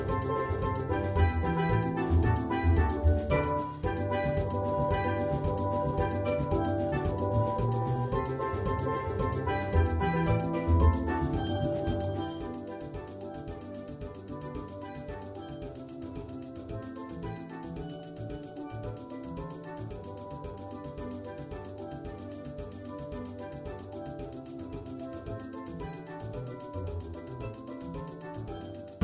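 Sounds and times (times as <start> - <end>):
steel drums playing a Christmas tune: 0.0 - 29.0.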